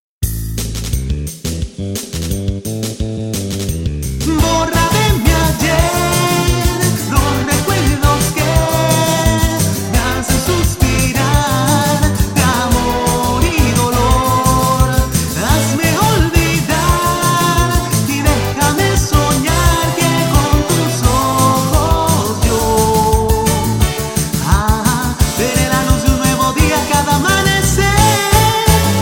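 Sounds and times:
RnB music: 0.2s - 29.0s.

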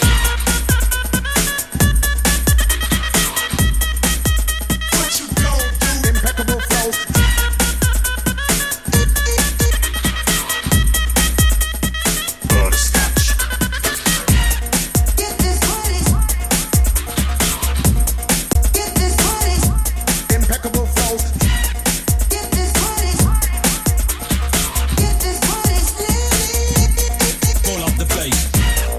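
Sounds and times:
breakbeat drums: 0.0s - 28.9s.

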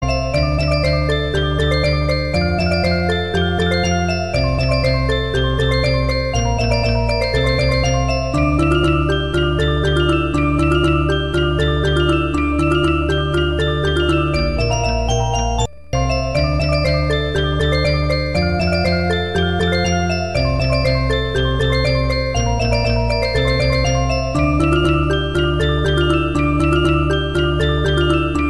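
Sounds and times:
music box: 0.0s - 28.4s.

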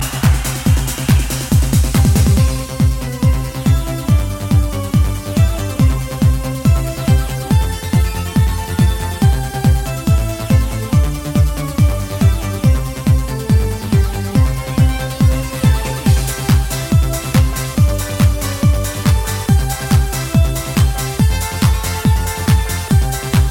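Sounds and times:
New Year's Eve song: 0.0s - 23.4s.

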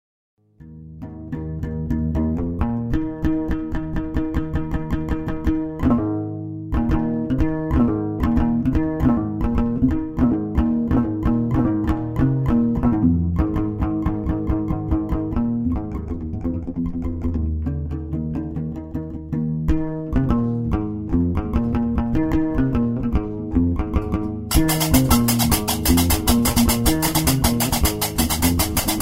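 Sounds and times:
oud: 0.6s - 29.0s.

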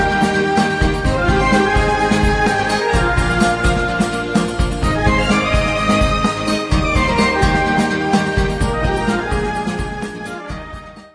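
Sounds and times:
sacred flute playing: 0.0s - 11.1s.

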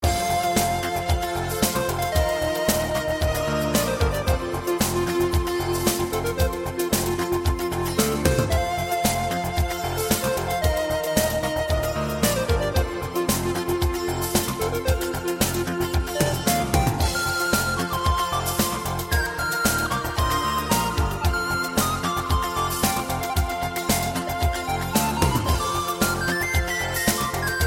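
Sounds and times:
melody ringtone: 0.0s - 27.6s.

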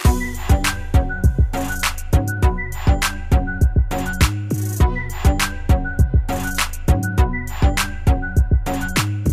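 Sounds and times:
trap instrumental: 0.0s - 9.3s.

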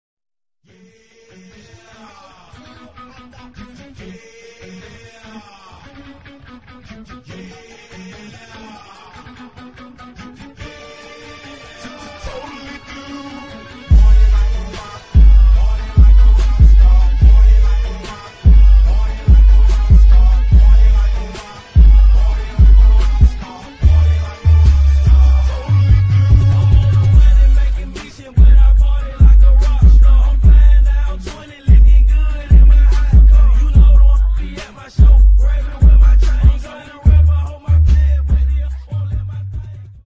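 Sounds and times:
clean boosted bass: 13.9s - 40.0s.

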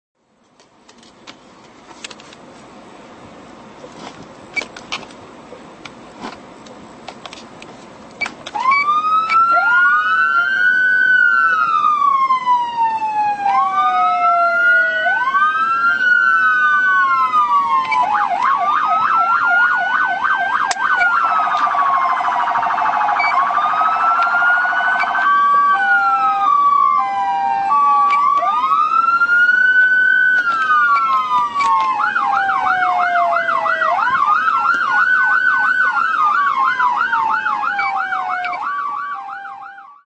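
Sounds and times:
Whelen Beta dual tone siren: 8.6s - 40.0s.

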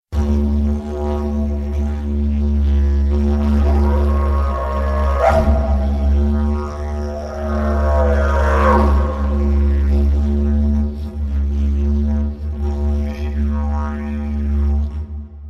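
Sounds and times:
didgeridoo: 0.1s - 15.4s.

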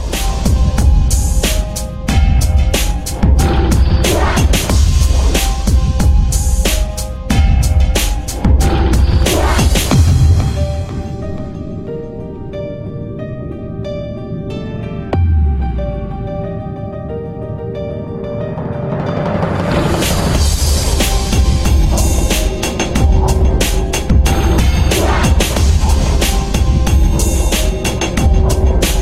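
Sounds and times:
dark piano music: 0.0s - 29.0s.

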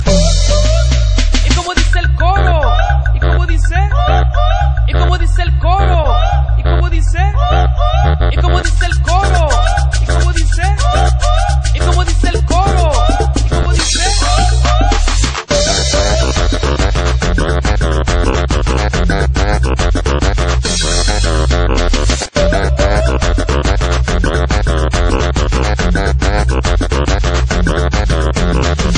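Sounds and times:
Latin costeño ringtone music: 0.0s - 28.9s.

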